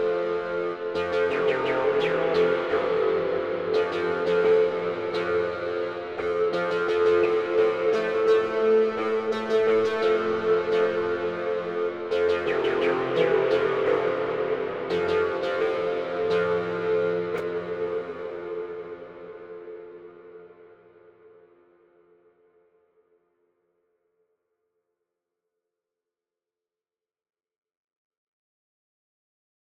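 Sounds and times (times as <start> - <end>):
MS-20 synthesizer with fully wet hall reverb: 0.0 - 21.6.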